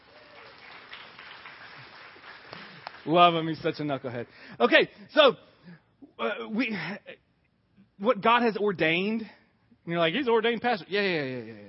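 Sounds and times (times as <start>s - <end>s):
crowd applause: 0.0s - 3.2s
speech: 3.0s - 7.2s, 8.0s - 11.6s.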